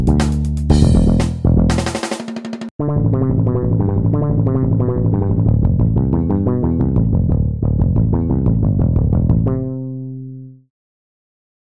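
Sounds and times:
electric bass playing funk groove: 0.0 - 2.1, 3.0 - 10.0.

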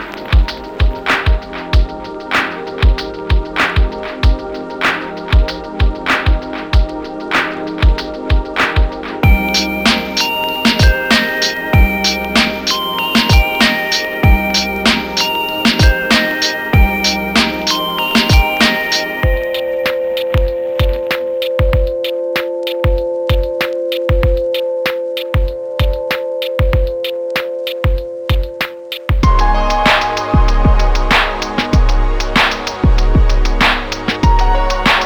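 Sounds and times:
organic lo-fi drums: 0.0 - 35.0.

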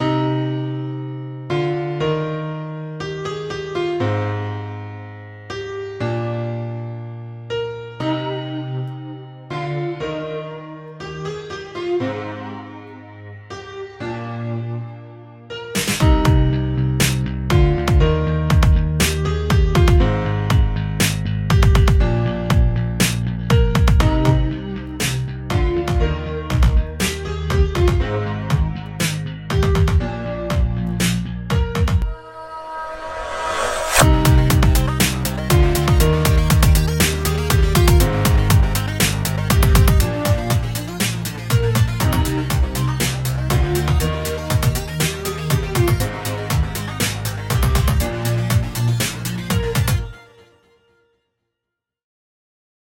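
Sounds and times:
piano: 0.0 - 51.1.

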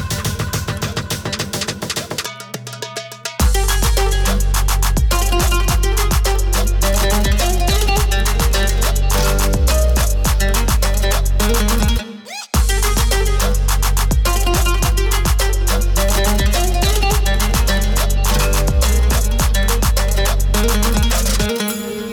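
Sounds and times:
Arabic oud: 0.0 - 22.1.

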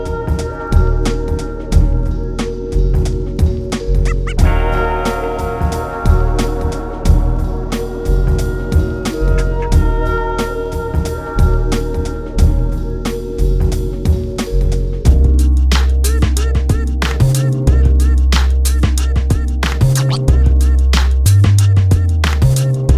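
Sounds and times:
vinyl record: 0.0 - 22.9.

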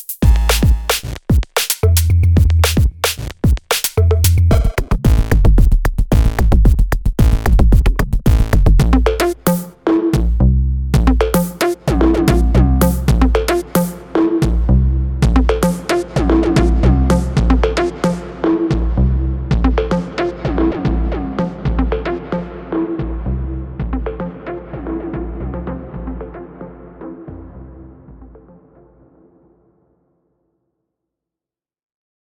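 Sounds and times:
distorted beat: 0.0 - 10.4, 11.0 - 23.2.

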